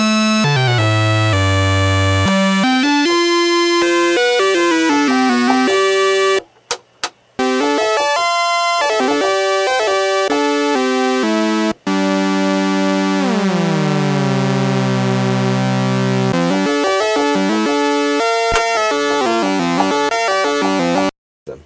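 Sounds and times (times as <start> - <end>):
Moog Realistic Concertmate MG-1 synthesizer: 0.0 - 6.4, 7.4 - 21.1.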